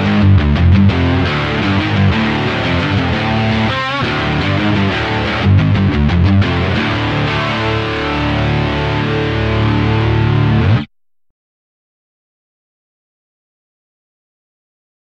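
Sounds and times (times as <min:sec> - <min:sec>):
electric guitar riff in drop D tuning: 0:00.0 - 0:10.9.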